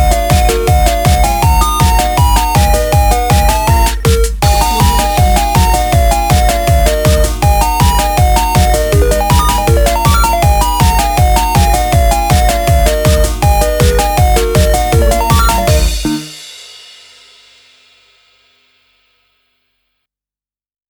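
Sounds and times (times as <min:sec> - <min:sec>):
8-bit game winner jingle: 0:00.0 - 0:16.4.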